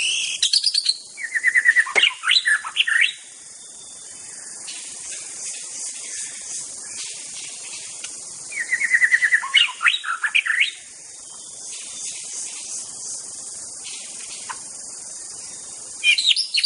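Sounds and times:
White-rumped shama song of fluty whistles in a forest: 0:00.0 - 0:04.1, 0:08.5 - 0:12.1, 0:16.0 - 0:16.6.

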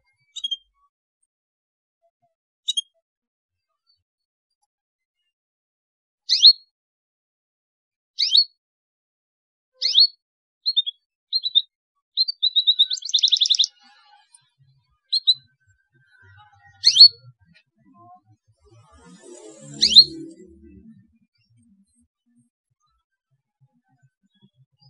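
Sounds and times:
canary singing: 0:08.2 - 0:08.4, 0:09.8 - 0:10.1, 0:10.7 - 0:18.0, 0:18.6 - 0:21.0.

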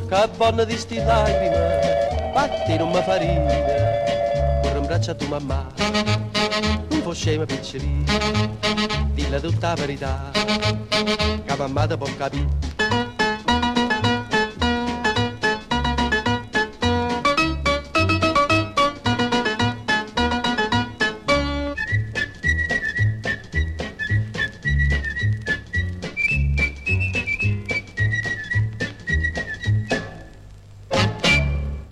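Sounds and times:
upbeat Italian song with bouncy bass and brisk rhythm: 0:00.0 - 0:30.2
speech: 0:00.1 - 0:04.2, 0:04.9 - 0:12.6
high clear whistled melody: 0:01.0 - 0:05.5, 0:21.5 - 0:30.3, 0:31.2 - 0:31.8.

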